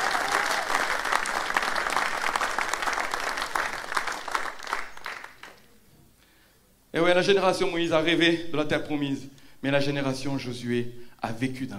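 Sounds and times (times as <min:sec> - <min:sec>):
church congregation applauding: 0:00.0 - 0:05.8
speech: 0:07.0 - 0:11.7.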